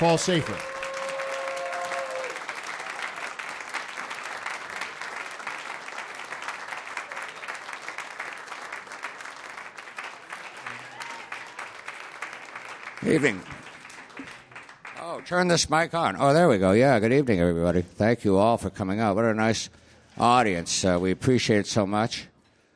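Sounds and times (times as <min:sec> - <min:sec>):
speech: 0:00.0 - 0:00.8, 0:13.1 - 0:13.6, 0:15.2 - 0:22.3
audience applause for a jazz quartet: 0:00.0 - 0:15.5.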